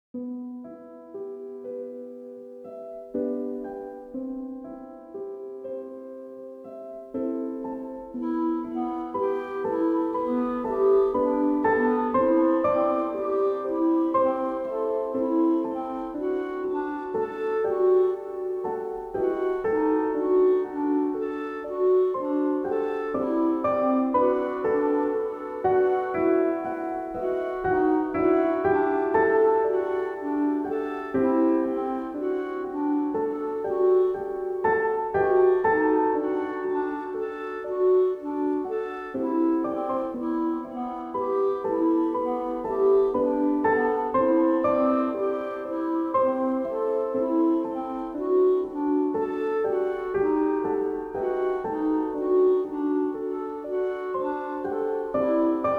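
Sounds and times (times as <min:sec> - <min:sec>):
chillout lounge piano music: 0:00.2 - 0:55.7.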